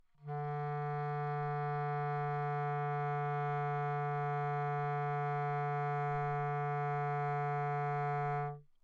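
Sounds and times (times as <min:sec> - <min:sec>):
low romantic B-flat clarinet playing in an anechoic setting: 0:00.2 - 0:08.6.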